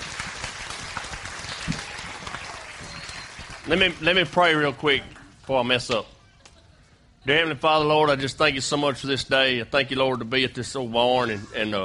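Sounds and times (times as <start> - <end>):
audience clapping greeting a guest speaker at a barn church: 0.0 - 5.6
speech: 3.7 - 6.2, 7.2 - 11.8.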